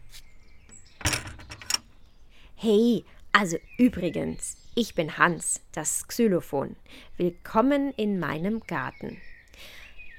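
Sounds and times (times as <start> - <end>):
garden gate swinging open, rattling and creaking: 0.7 - 2.0
speech: 2.6 - 10.1.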